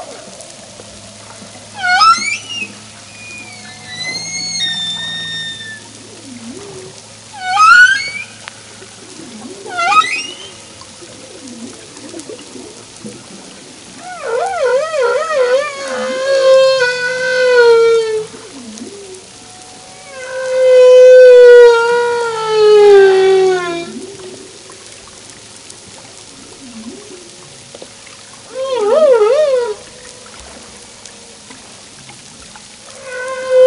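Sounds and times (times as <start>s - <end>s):
humpback whale: 0.0s - 33.6s.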